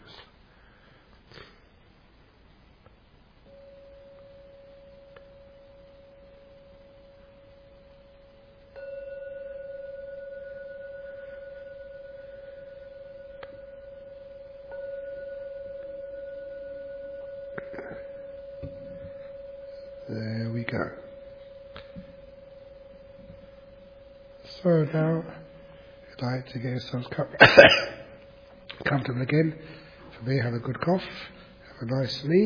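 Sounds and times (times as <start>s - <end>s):
bowed gong resonating: 8.7s - 25.8s
speech: 24.6s - 25.4s, 26.2s - 28.0s, 28.9s - 32.4s.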